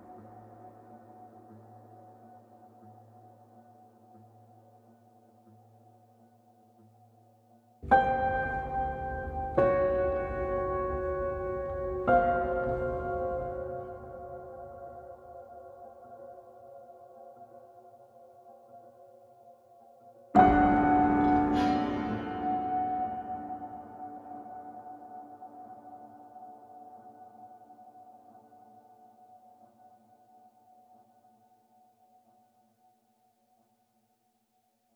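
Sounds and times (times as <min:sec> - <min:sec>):
solo piano: 0:07.8 - 0:15.2, 0:20.4 - 0:26.2.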